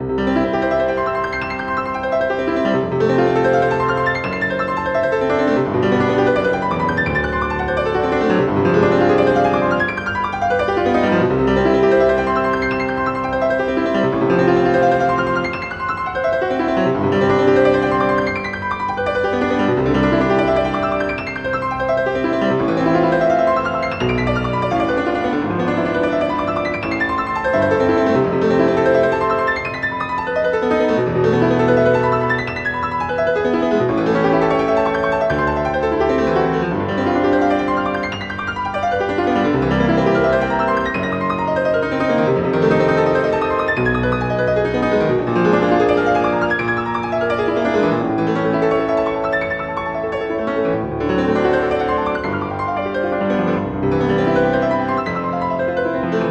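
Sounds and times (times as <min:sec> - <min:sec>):
allegro instrumental etude: 0:00.0 - 0:56.2.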